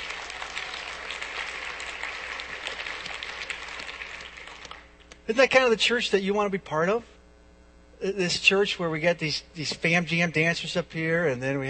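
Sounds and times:
audience clapping: 0.0s - 5.2s
speech: 5.3s - 7.1s, 8.0s - 11.6s.

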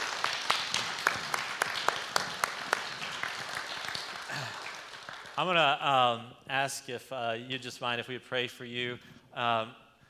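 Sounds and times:
crowd round of applause: 0.0s - 5.5s
speech: 5.4s - 9.8s.

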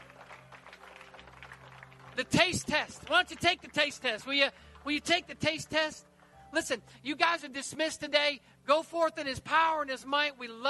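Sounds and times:
audience clapping: 0.0s - 6.4s
speech: 2.2s - 10.6s.

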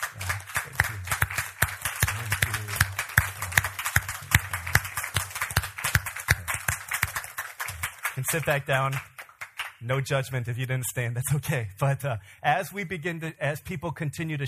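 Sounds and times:
audience applause: 0.0s - 9.8s
speech: 8.3s - 9.1s, 9.8s - 14.4s.

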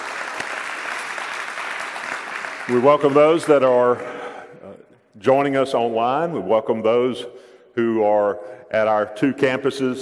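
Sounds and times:
audience praise clapping: 0.0s - 4.2s
speech: 2.7s - 4.2s, 5.2s - 9.9s.

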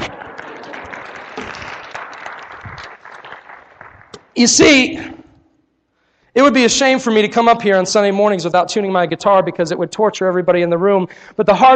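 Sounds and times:
audience applauding: 0.0s - 4.7s
speech: 4.4s - 5.2s, 6.4s - 11.7s.

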